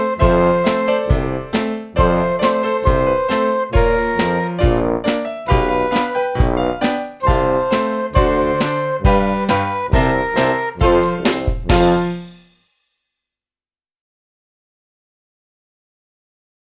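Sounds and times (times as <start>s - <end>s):
flute: 0.0s - 12.1s.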